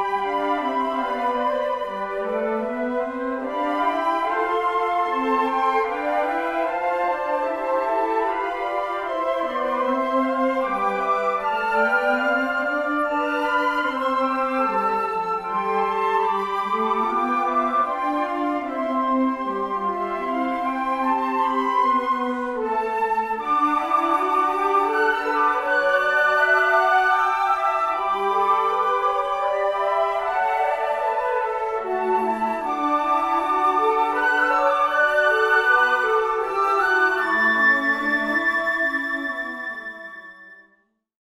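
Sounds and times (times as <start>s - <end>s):
flute choir playing a hymn: 0.0s - 40.8s.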